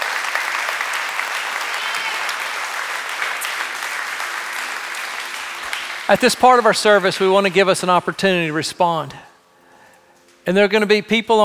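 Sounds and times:
audience applause: 0.0 - 8.6
speech: 6.1 - 9.3, 10.4 - 11.4.

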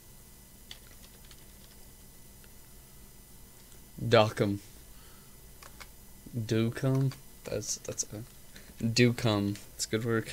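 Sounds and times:
typing on a computer keyboard: 0.7 - 1.9, 5.6 - 5.9, 6.8 - 7.2
steady low hiss: 1.4 - 10.3
speech: 4.0 - 4.7, 6.4 - 10.3.

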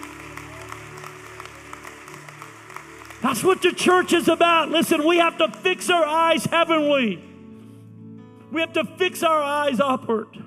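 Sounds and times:
audience hand clapping in praise: 0.0 - 7.1
speech: 3.3 - 7.3, 8.5 - 10.4.

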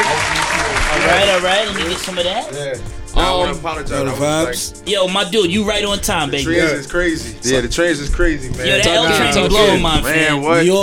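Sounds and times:
applause from a small group: 0.0 - 2.6
people talking and calling out: 0.0 - 10.8
speech: 1.1 - 10.8.

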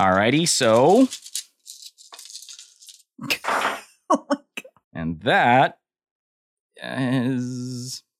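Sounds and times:
speech: 0.0 - 1.3, 5.2 - 5.8, 6.8 - 8.1
dice rolling sound from phone app: 0.0 - 3.1.

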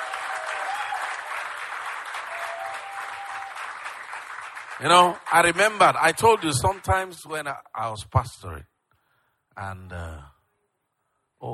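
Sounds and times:
audience clapping: 0.0 - 7.5
speech: 4.8 - 8.7, 9.6 - 10.3.

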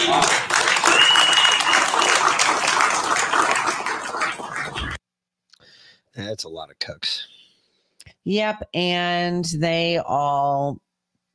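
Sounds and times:
round of applause from a crowd: 0.0 - 5.0
speech: 6.3 - 7.3, 8.0 - 10.8.

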